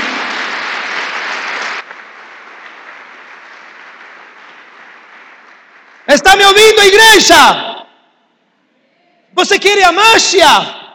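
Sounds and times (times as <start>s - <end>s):
audience applauding: 0.0s - 6.7s
speech: 6.2s - 7.7s, 9.4s - 10.8s.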